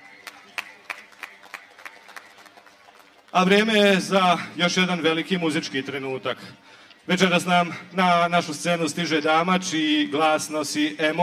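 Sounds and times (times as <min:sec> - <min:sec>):
rhythmic audience clapping at an outdoor summer festival stage in Zenica: 0:00.0 - 0:04.0
speech: 0:03.3 - 0:11.2.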